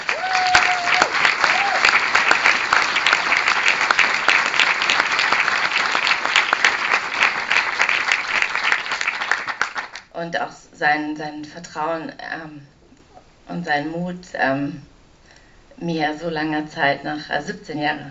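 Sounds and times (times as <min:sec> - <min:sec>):
audience applause: 0:00.0 - 0:10.1
speech: 0:10.2 - 0:12.8, 0:13.5 - 0:14.9, 0:15.8 - 0:18.0.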